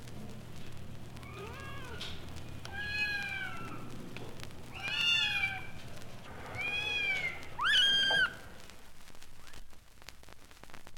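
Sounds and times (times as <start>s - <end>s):
domestic cat kittens meowing: 1.2s - 3.9s, 4.7s - 5.8s, 6.4s - 8.5s.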